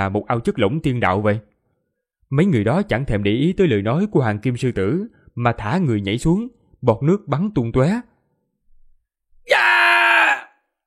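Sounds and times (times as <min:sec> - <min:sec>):
speech: 0:00.0 - 0:01.5, 0:02.3 - 0:08.1
people screaming in pain: 0:09.5 - 0:10.5.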